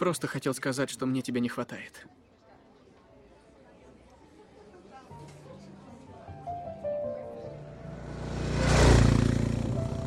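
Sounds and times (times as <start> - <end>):
speech: 0.0 - 2.2
motorcycle riding along a desert road: 7.6 - 10.0.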